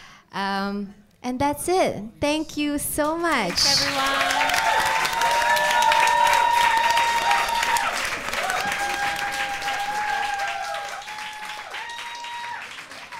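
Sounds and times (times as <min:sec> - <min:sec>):
speech: 0:00.4 - 0:04.6
large audience applause for panelists: 0:03.5 - 0:13.1
cheers or whistles: 0:04.2 - 0:13.1.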